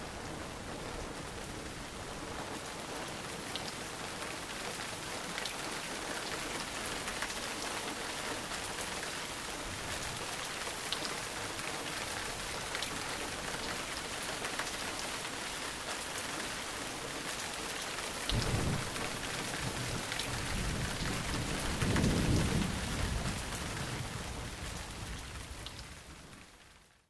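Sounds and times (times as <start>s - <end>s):
rain: 0.0s - 27.0s
thunderstorm: 18.3s - 25.7s.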